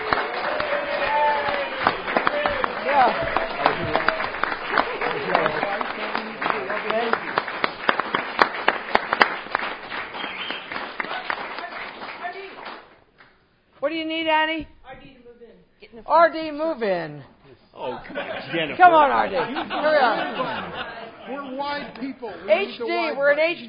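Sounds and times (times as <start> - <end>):
audience applause: 0.0 - 12.9
laughter: 1.8 - 7.2, 17.9 - 22.8
speech: 16.1 - 23.6.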